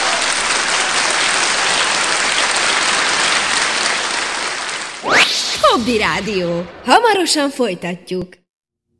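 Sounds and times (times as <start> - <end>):
audience applause: 0.0 - 5.0
speech: 5.8 - 8.4.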